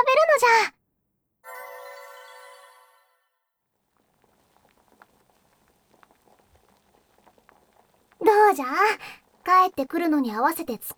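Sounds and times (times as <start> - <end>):
bright ringing chime: 1.4 - 3.3
hot pot simmering on the stove for dinner: 3.8 - 10.9
speech: 8.5 - 10.9.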